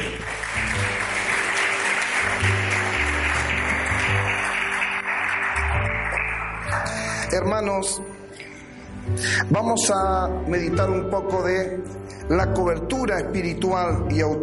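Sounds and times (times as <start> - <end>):
audience applause: 0.0 - 7.2
speech: 7.3 - 8.2, 9.1 - 14.4.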